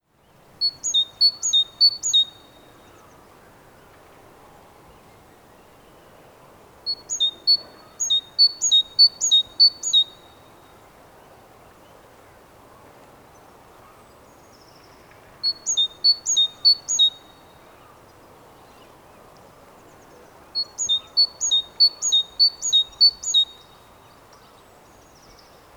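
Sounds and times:
great tit singing: 0.6 - 2.6, 6.9 - 10.4, 15.4 - 17.3, 20.6 - 23.6.

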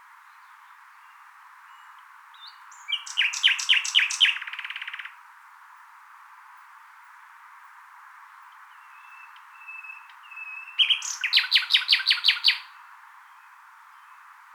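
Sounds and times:
common nightingale singing: 0.3 - 5.2, 8.4 - 14.5
speech: 11.3 - 12.6.

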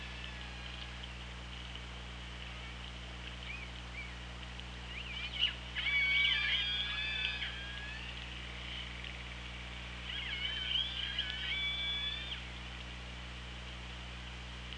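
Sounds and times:
orca squealing and whistling calls: 0.0 - 1.0, 4.9 - 8.8, 10.0 - 12.4
steady low underwater hum: 0.0 - 14.7.

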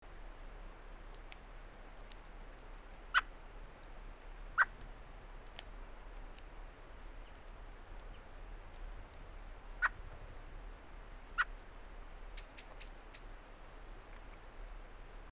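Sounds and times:
faint background hiss: 0.0 - 15.2
common blackbird chuck calls: 3.0 - 3.5, 6.9 - 14.4.

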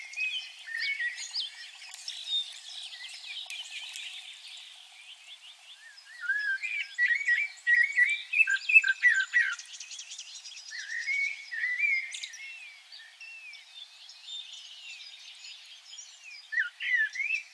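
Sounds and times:
bird chatter: 0.0 - 12.4
Common blackbird singing twittering phrase: 0.0 - 17.5.

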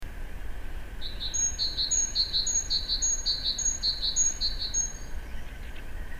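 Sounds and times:
great tit calls: 1.0 - 5.9.

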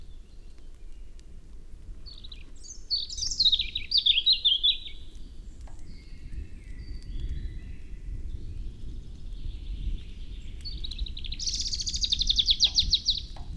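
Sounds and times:
European robin song: 2.1 - 7.8, 9.9 - 13.4.

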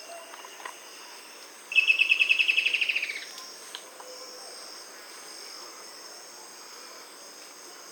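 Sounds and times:
bird trill: 1.7 - 3.3.

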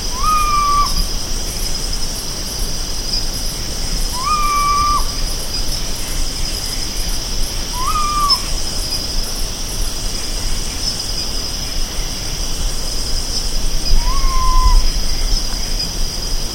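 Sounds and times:
high insect-like hiss: 0.0 - 16.5
whistled bird call: 0.1 - 1.1, 4.1 - 5.2, 7.7 - 8.5, 13.9 - 15.3.

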